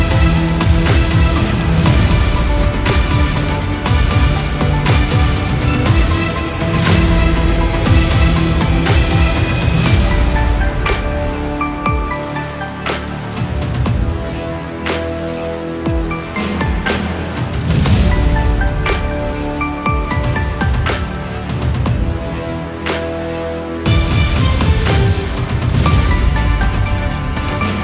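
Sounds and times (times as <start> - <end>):
trailer-style arrangement of a Christmas song: 0.0 - 27.8.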